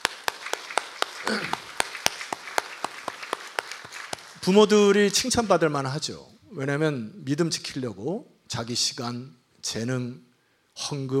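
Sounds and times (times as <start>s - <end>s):
audience applauding: 0.0s - 4.8s
speech: 4.4s - 11.1s.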